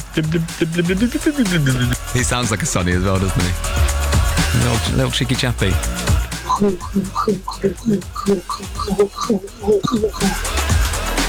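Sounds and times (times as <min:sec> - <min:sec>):
laughter: 0:00.0 - 0:11.2
voice imitating rain: 0:00.0 - 0:11.2
speech: 0:00.2 - 0:10.6.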